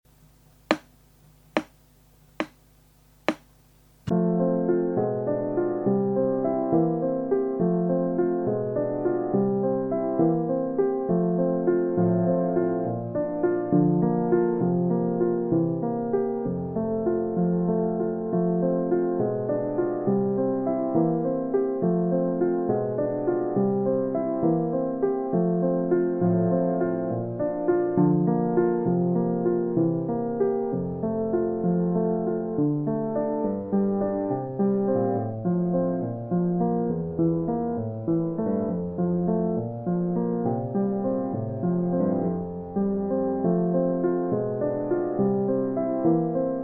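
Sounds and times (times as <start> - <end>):
piano: 0.1 - 46.6.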